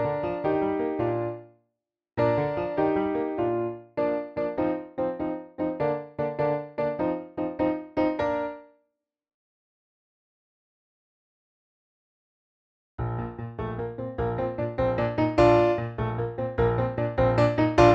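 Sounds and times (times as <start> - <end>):
piano accompaniment at performance tempo: 0.0 - 1.5, 2.2 - 8.7, 13.0 - 17.9.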